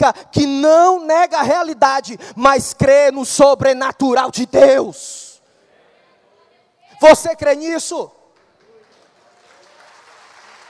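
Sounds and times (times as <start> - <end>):
speech: 0.0 - 5.2, 7.0 - 8.2
audience applause: 8.4 - 10.6.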